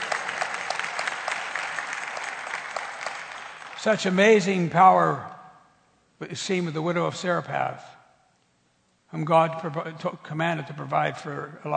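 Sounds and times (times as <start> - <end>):
audience clapping: 0.0 - 4.4
speech: 3.8 - 5.3, 6.2 - 8.0, 9.1 - 11.7.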